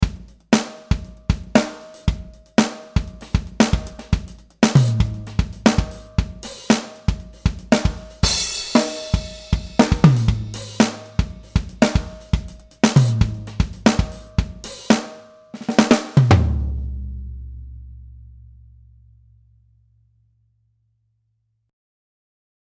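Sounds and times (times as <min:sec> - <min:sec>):
funk drums on a DW maple kit: 0:00.0 - 0:17.6.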